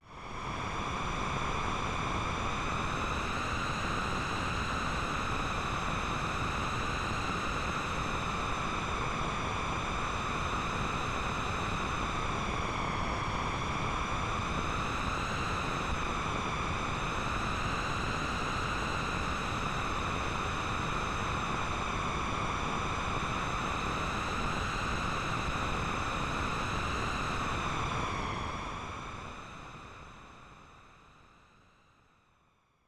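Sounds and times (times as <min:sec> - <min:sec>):
wind: 0:00.0 - 0:31.7.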